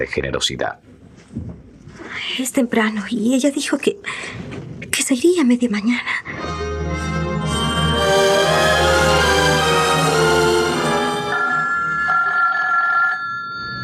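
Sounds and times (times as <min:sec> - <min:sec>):
speech: 0:00.0 - 0:01.6, 0:02.4 - 0:06.6
insistent doorbell ringing in an empty house: 0:07.4 - 0:13.8.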